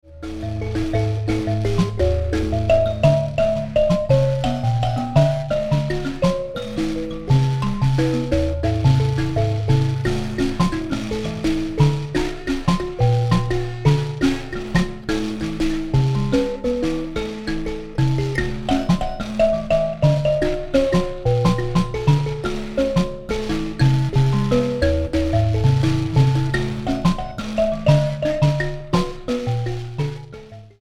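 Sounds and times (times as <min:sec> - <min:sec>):
mbira: 0:00.1 - 0:30.8.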